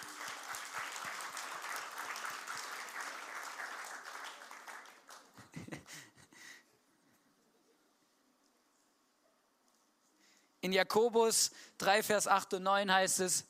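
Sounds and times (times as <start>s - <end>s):
audience applause: 0.0s - 5.6s
speech: 10.6s - 13.4s.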